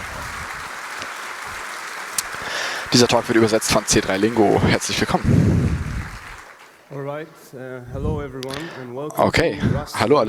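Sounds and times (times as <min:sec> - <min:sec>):
applause: 0:00.0 - 0:07.0
speech: 0:02.9 - 0:05.9, 0:06.9 - 0:10.2.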